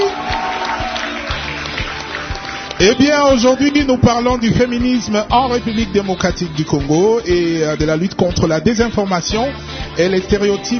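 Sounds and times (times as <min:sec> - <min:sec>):
studio audience applause: 0:00.0 - 0:08.3
speech: 0:02.8 - 0:10.7.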